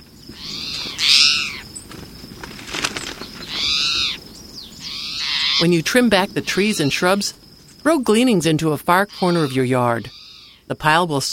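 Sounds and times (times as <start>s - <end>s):
speech: 0.3s - 0.6s, 5.6s - 11.3s
towhee harsh calls: 0.3s - 1.8s, 3.3s - 7.3s, 8.9s - 10.7s
towhee scuffling through leaf litter: 0.4s - 4.2s.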